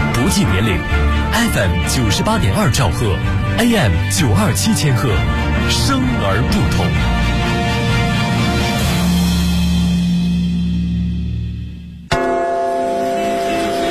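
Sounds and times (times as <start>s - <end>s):
speech: 0.3s - 7.2s
deep bell of the Big Ben clock tower tolling: 4.2s - 13.8s.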